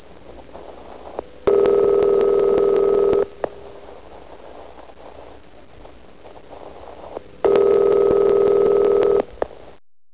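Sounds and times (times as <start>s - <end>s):
telephone: 1.5s - 3.3s, 7.4s - 9.3s.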